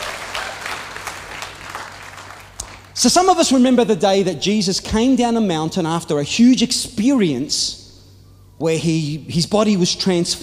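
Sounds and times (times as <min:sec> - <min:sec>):
audience applause during a church service: 0:00.0 - 0:02.9
speech: 0:03.0 - 0:07.8, 0:08.6 - 0:10.4.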